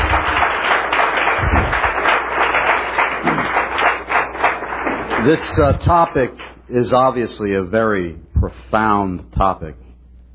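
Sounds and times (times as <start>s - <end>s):
audience applause: 0.0s - 6.5s
speech: 5.2s - 9.8s.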